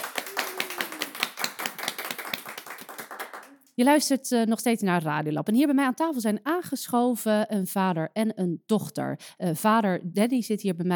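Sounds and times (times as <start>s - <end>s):
studio audience applause: 0.0s - 3.7s
speech: 3.8s - 10.9s.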